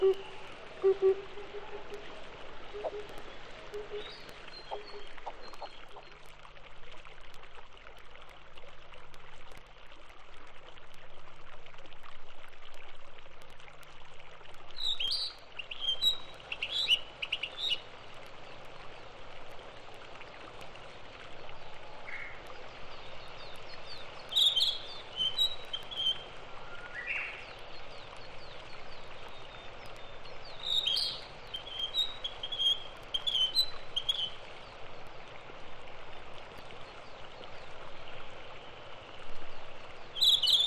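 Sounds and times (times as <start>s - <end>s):
wild birds singing on Mount Takao: 0.0s - 6.0s, 14.8s - 17.9s, 23.0s - 34.8s, 40.2s - 40.6s.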